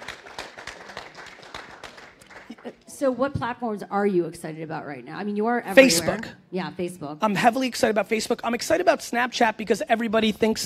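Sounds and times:
audience applause: 0:00.0 - 0:02.8
speech: 0:02.6 - 0:10.6.

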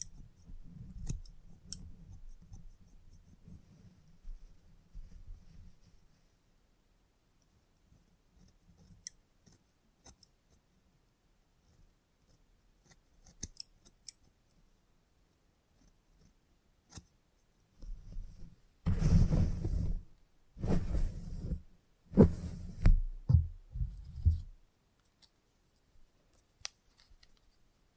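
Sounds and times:
salon haircut scissor snips: 0:12.9 - 0:14.2
salon haircut low rustling: 0:18.8 - 0:24.6.

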